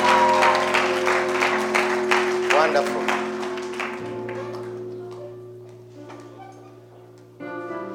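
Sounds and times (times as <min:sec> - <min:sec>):
audience clapping: 0:00.0 - 0:06.3
speech: 0:02.6 - 0:03.1.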